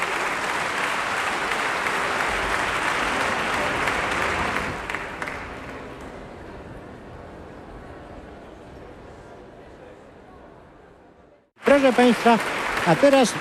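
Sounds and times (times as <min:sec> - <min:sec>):
concert audience applause: 0:00.0 - 0:06.2, 0:11.6 - 0:13.3
speech: 0:11.8 - 0:13.3.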